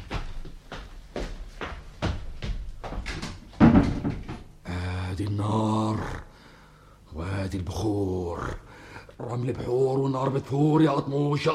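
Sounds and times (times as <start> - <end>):
wooden door thudding shut: 3.1 - 4.5
speech: 5.2 - 6.2, 7.4 - 8.6, 9.2 - 11.5.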